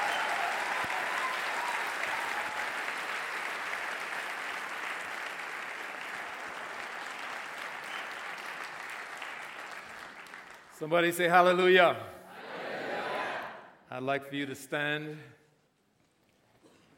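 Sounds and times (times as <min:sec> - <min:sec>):
church audience applause welcoming a guest speaker: 0:00.0 - 0:11.6
speech: 0:10.8 - 0:12.1, 0:14.0 - 0:15.4.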